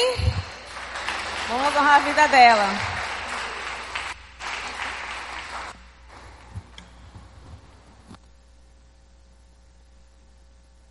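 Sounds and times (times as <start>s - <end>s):
round of applause: 0.0s - 5.8s
speech: 1.7s - 2.9s.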